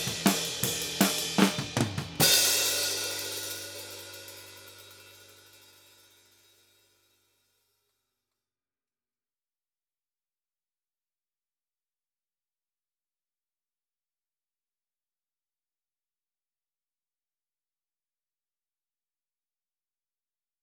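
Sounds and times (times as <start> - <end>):
snare drum: 0.0 - 4.8.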